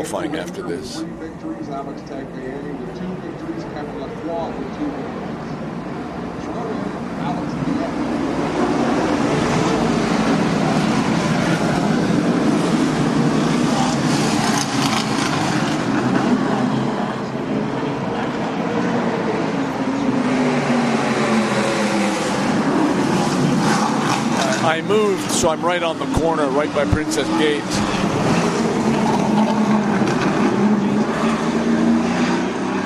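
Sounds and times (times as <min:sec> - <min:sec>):
speech: 0:00.0 - 0:05.4, 0:06.6 - 0:08.6, 0:24.8 - 0:28.1
racing cars on a practice lap at a circuit near Princess Gate: 0:00.0 - 0:32.8.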